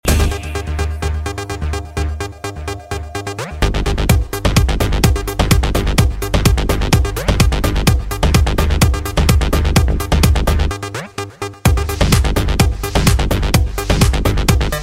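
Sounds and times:
drum beat: 0.0 - 1.8, 3.3 - 10.8, 11.7 - 14.8.

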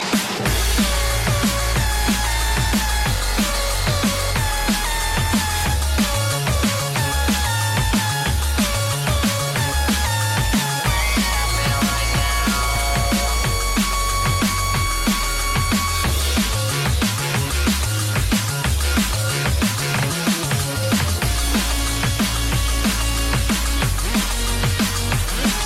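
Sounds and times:
hard beat: 0.0 - 25.6.

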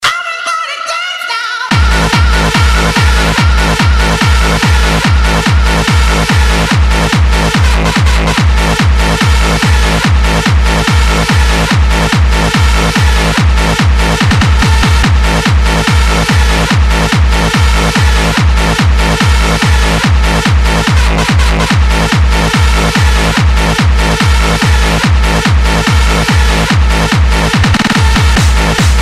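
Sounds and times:
hardstyle music: 0.0 - 29.0.

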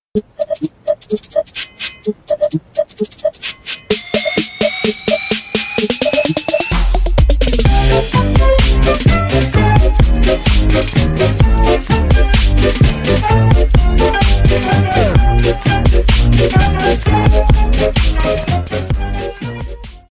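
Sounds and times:
trap beat: 0.2 - 20.0.

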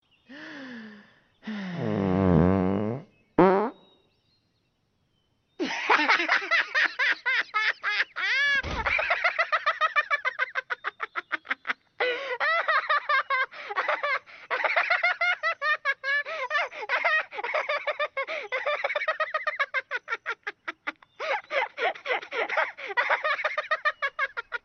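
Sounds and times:
funny fart: 1.8 - 3.8
laughter: 5.6 - 24.6.

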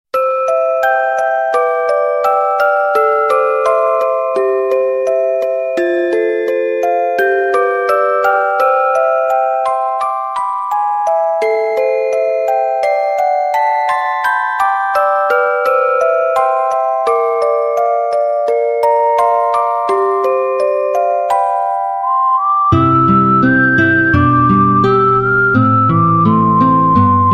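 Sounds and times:
cute song: 0.1 - 27.3.

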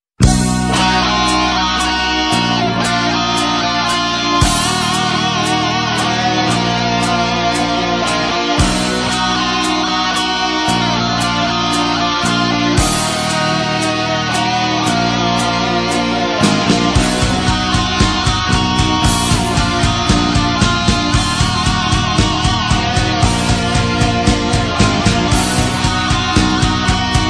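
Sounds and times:
rock guitar: 0.2 - 27.2.

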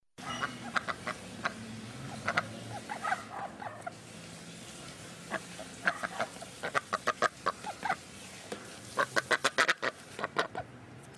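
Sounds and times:
duck: 0.2 - 3.9, 5.3 - 8.0, 9.0 - 10.6.

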